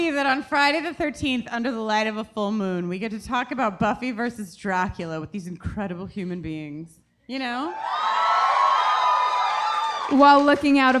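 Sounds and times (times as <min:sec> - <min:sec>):
speech: 0:00.0 - 0:08.2, 0:10.1 - 0:10.9
audience cheering and whooping: 0:07.6 - 0:10.9
clapping: 0:09.2 - 0:10.9.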